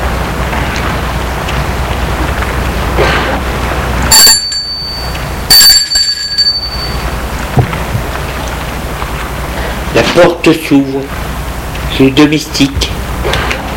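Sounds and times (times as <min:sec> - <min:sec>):
steady hiss like rain: 0:00.0 - 0:05.5, 0:06.1 - 0:13.7
doorbell chime: 0:04.1 - 0:07.2
speech: 0:10.2 - 0:11.2, 0:12.0 - 0:12.9.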